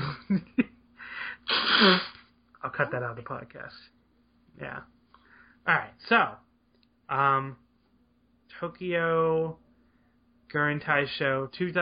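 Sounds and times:
speech: 0:00.3 - 0:00.6, 0:01.5 - 0:02.1, 0:02.8 - 0:04.0, 0:04.6 - 0:05.0, 0:05.6 - 0:06.4, 0:07.1 - 0:07.6, 0:08.5 - 0:09.6, 0:10.5 - 0:11.8
person blowing nose: 0:01.4 - 0:02.3.

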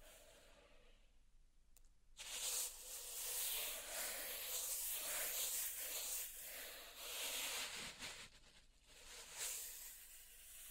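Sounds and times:
pink salt raked and brushed in a zen garden: 0:02.3 - 0:10.6.

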